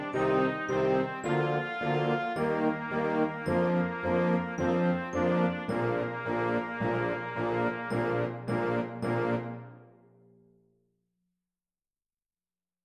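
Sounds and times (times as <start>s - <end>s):
ceremonial march music: 0.0s - 9.9s.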